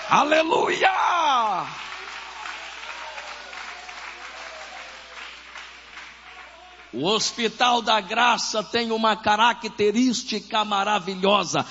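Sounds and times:
speech: 0.1 - 1.9, 6.9 - 11.6
audience applauding: 1.4 - 6.9.

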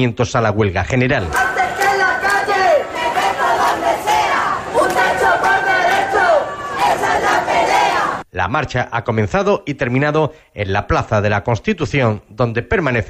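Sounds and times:
speech: 0.0 - 1.5, 8.4 - 13.0
protest crowd shouting against the right-wing bloc: 1.3 - 8.2.

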